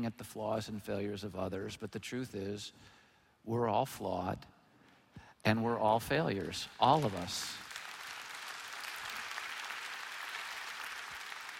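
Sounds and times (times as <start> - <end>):
speech: 0.0 - 4.6, 5.4 - 7.7
audience clapping: 6.2 - 11.5.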